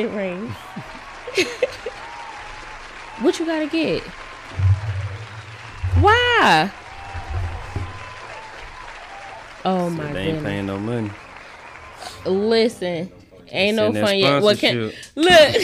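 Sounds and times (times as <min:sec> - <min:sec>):
speech: 0:00.0 - 0:02.0, 0:03.2 - 0:04.7, 0:06.0 - 0:06.8, 0:09.6 - 0:11.2, 0:12.2 - 0:15.6
audience applause: 0:00.0 - 0:12.8
laughter: 0:00.7 - 0:02.2, 0:15.2 - 0:15.6.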